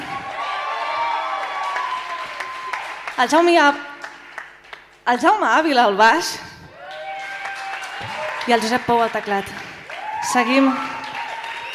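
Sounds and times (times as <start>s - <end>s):
loud whooping cheer: 0.0s - 3.1s, 6.7s - 8.8s, 9.8s - 11.7s
audience applause for a guitarist: 0.0s - 5.0s, 6.7s - 11.7s
speech: 3.2s - 3.9s, 5.1s - 6.5s, 8.0s - 9.6s, 10.2s - 10.9s.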